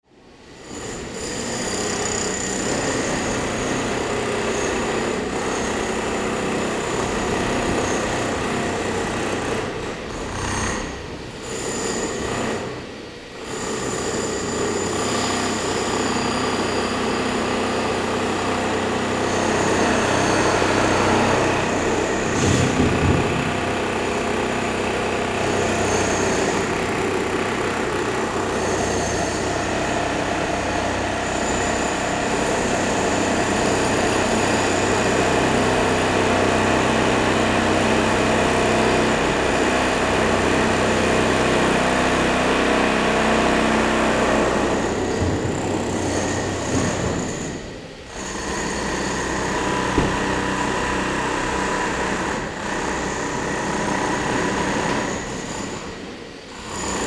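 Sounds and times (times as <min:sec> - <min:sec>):
hammer drill in a tunnel: 0:00.6 - 0:12.8, 0:13.4 - 0:57.0.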